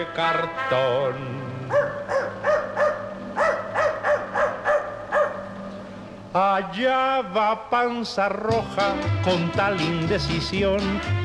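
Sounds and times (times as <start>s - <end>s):
speech: 0.0s - 2.2s, 6.3s - 11.2s
dog barking: 1.7s - 5.6s.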